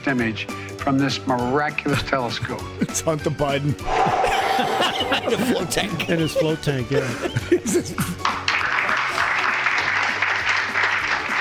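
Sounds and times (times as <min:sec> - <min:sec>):
speech: 0:00.0 - 0:08.4
laughter: 0:01.9 - 0:03.3, 0:04.0 - 0:09.4
audience clapping: 0:04.9 - 0:11.3.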